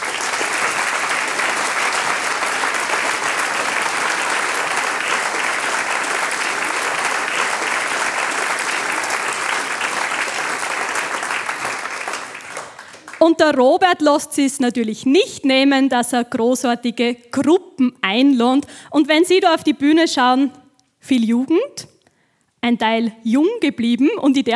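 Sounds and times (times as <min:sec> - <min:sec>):
audience applause: 0:00.0 - 0:13.2
speech: 0:13.3 - 0:21.9, 0:22.6 - 0:24.5.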